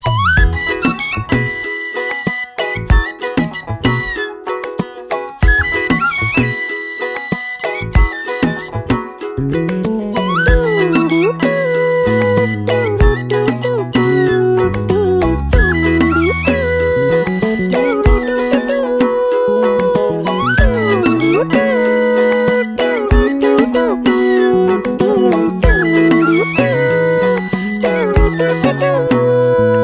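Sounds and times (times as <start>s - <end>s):
flute tone: 0.0s - 29.8s.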